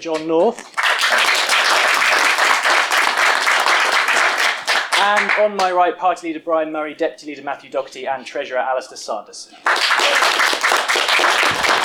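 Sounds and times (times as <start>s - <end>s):
speech: 0.0s - 1.2s, 5.0s - 11.4s
audience applause welcoming the teams at a panel game show: 0.7s - 5.4s, 9.6s - 11.8s.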